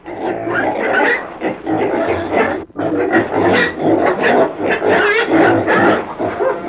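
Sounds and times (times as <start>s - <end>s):
pig grunting: 0.0s - 6.6s.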